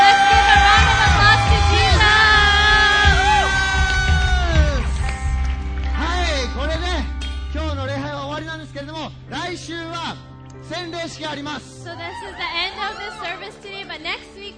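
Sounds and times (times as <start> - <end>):
whoops and high yelling voices: 0.0 - 5.0, 11.9 - 13.7
audience applauding: 0.0 - 7.0.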